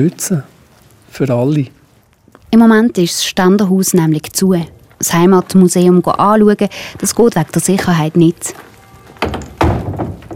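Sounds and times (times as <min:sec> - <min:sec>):
speech: 0:00.0 - 0:01.8, 0:02.5 - 0:08.7
large wooden gate being closed and locked: 0:08.8 - 0:10.3.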